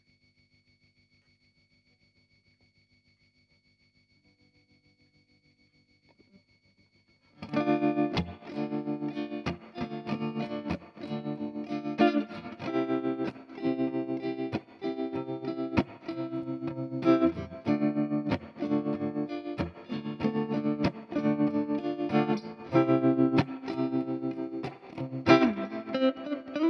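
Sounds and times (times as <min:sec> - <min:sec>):
guitar: 0:07.4 - 0:26.6.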